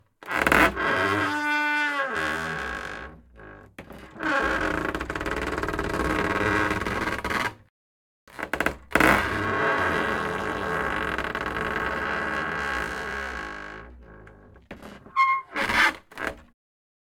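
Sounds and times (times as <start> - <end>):
closet door squeaking open and closed: 0.3 - 3.1, 4.0 - 7.2, 9.0 - 16.5.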